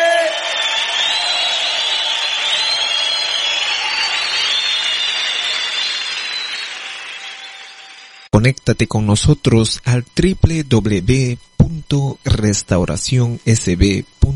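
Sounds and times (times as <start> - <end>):
church congregation cheering and whooping in praise of Jesus Christ: 0.0 - 8.3
speech: 8.4 - 14.3.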